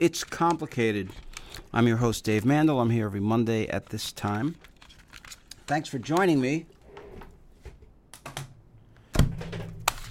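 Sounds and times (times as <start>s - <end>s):
speech: 0.0s - 4.7s, 5.7s - 6.8s
plastic CD cases clattering as CDs are shuffled in a radio studio: 0.1s - 6.6s, 9.4s - 10.0s.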